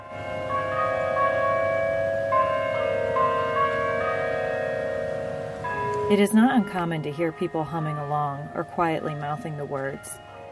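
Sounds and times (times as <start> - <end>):
tower bells chiming the quarter hours: 0.0 - 10.5
speech: 6.1 - 10.3.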